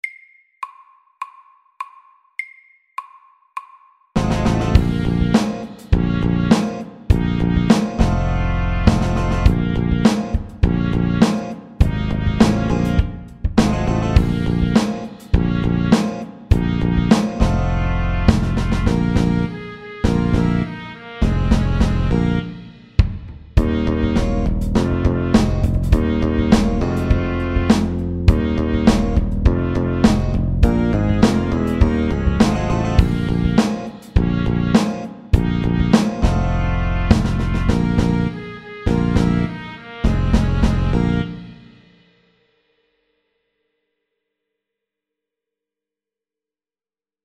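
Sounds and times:
funky music at 102 BPM: 4.2 - 41.8.

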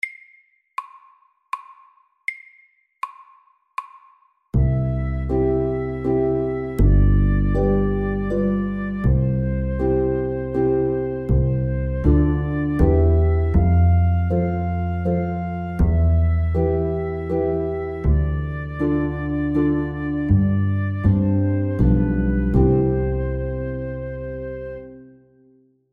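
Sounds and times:
slow summer waltz: 4.6 - 25.1.

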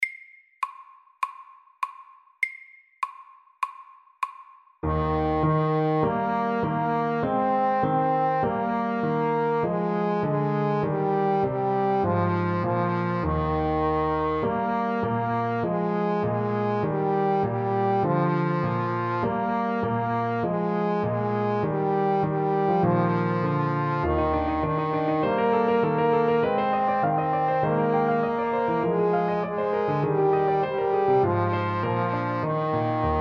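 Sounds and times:
allegretto music: 4.8 - 33.1.

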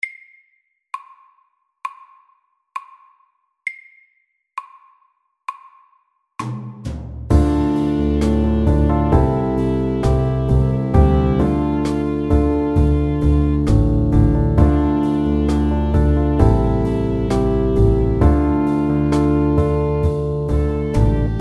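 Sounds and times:
medium pop ballad: 7.3 - 21.3.

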